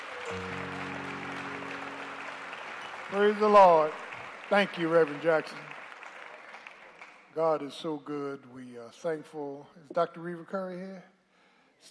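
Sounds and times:
low organ-like chord: 0.0s - 3.8s
audience clapping: 0.0s - 7.6s
speech: 3.1s - 5.7s, 7.4s - 11.1s.

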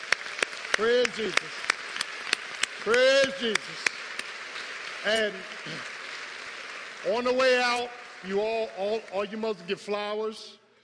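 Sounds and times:
audience applauding: 0.0s - 10.2s
speech: 0.8s - 1.7s, 2.8s - 3.9s, 5.0s - 6.0s, 7.0s - 10.6s.

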